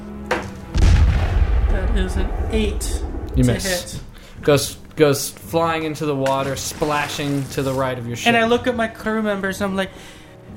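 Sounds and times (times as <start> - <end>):
cannon firing: 0.6 - 3.4
speech: 2.0 - 10.2.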